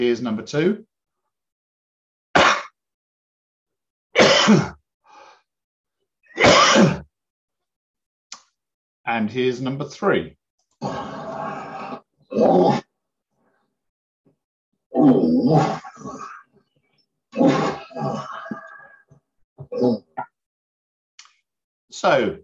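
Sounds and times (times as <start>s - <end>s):
speech: 0.0s - 0.9s, 4.5s - 4.8s, 9.1s - 11.1s, 12.4s - 12.8s, 15.0s - 16.3s, 19.7s - 20.0s, 22.0s - 22.4s
cat with asthma coughing: 4.2s - 4.8s, 6.4s - 7.1s
horse with asthma coughing: 6.4s - 7.0s.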